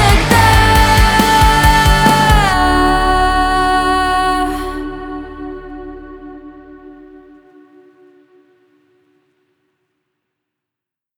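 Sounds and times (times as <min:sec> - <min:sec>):
two voices: 0:00.0 - 0:06.8.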